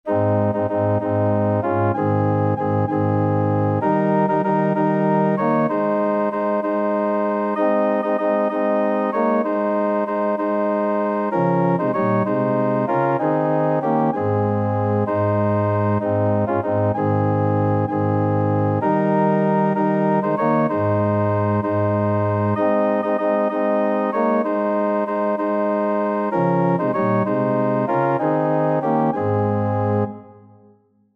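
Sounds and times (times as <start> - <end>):
organ: 0.1 - 30.4.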